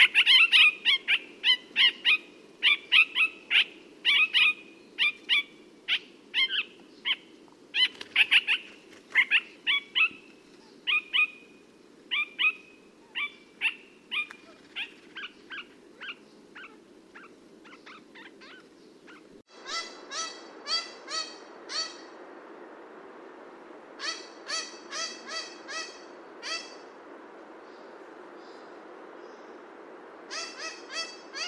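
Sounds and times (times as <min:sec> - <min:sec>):
parakeet calls: 0:00.0 - 0:10.2, 0:10.8 - 0:11.5, 0:12.1 - 0:22.1, 0:24.0 - 0:26.8, 0:30.3 - 0:31.4.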